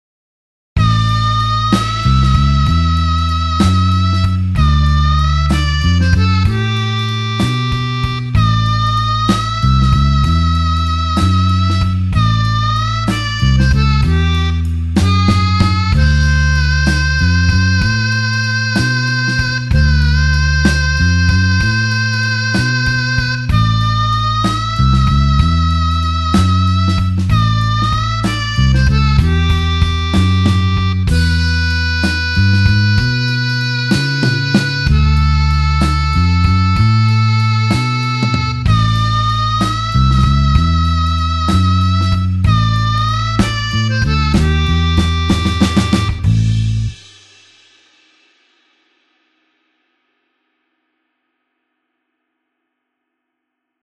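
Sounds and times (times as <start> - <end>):
slow blues harmonica in A: 0.8 - 47.2.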